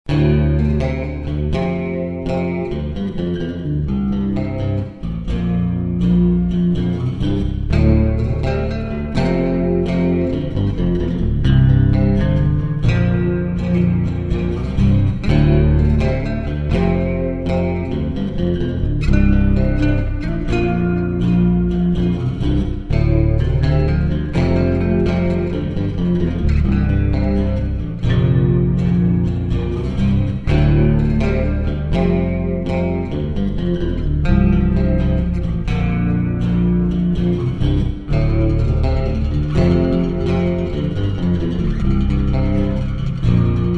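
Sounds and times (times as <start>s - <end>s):
bass: 0.0s - 43.7s.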